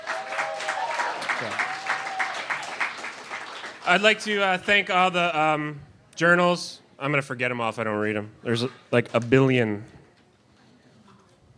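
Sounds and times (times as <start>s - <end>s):
audience applause: 0.0s - 4.4s
speech: 1.4s - 1.7s, 3.9s - 10.0s.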